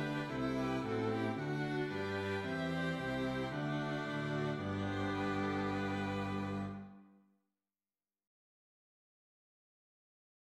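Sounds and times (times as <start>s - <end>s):
strings: 0.0s - 7.0s.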